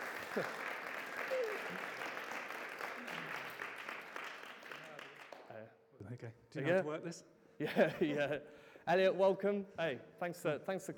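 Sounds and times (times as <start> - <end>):
audience applause welcoming a speaker onto the stage: 0.0 - 5.5
speech: 0.4 - 0.6, 6.2 - 10.9.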